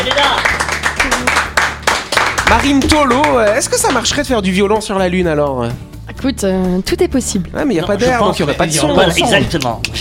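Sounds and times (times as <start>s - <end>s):
crowd applause: 0.0s - 3.6s
speech: 2.5s - 9.9s.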